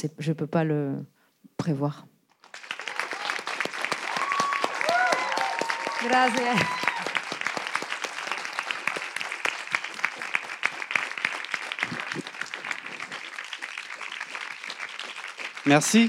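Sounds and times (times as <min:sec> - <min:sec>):
speech: 0:00.0 - 0:02.1, 0:06.0 - 0:06.9, 0:15.7 - 0:16.0
audience applause: 0:02.4 - 0:16.0.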